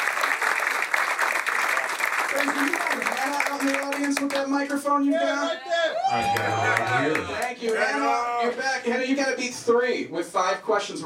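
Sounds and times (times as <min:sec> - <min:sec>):
quiz audience applause for a contestant: 0:00.0 - 0:05.0, 0:06.0 - 0:08.0
speech: 0:02.3 - 0:11.0.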